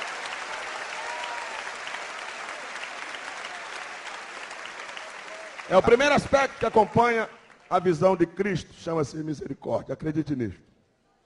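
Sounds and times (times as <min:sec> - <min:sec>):
audience applauding: 0:00.0 - 0:07.9
speech: 0:05.7 - 0:10.7.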